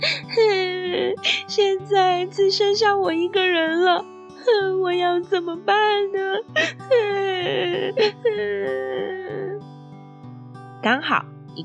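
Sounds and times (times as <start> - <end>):
girl crying alone after her mother's funeral: 0.0 - 1.8, 4.5 - 9.6
speech: 1.1 - 9.5, 10.8 - 11.6.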